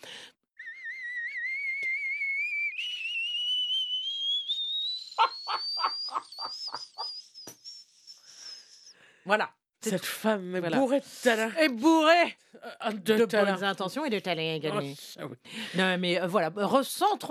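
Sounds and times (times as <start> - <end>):
voice imitating a whistling kettle: 0.6 - 8.8
speech: 9.3 - 17.2.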